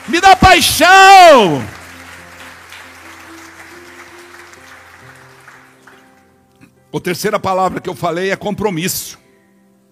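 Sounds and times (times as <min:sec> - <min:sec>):
audience applauding: 0:00.0 - 0:06.4
speech: 0:00.1 - 0:01.8, 0:06.9 - 0:09.2.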